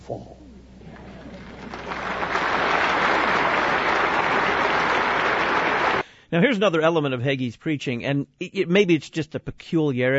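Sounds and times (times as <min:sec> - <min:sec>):
speech: 0:00.1 - 0:00.4, 0:06.3 - 0:10.1
church audience applause during a sermon: 0:00.9 - 0:06.0.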